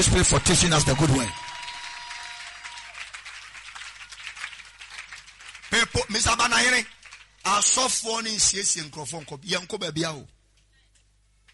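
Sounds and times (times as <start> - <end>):
speech: 0.0 - 1.5, 5.7 - 10.4
audience clapping: 0.0 - 10.3.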